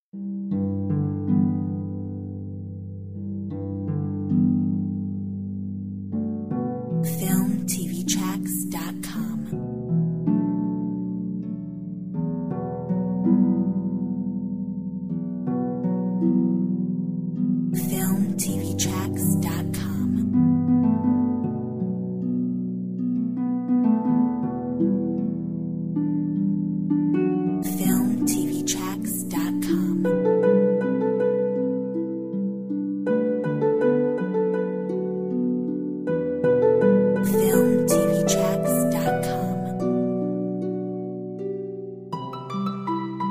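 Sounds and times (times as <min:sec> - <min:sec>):
harp: 0:00.2 - 0:43.2.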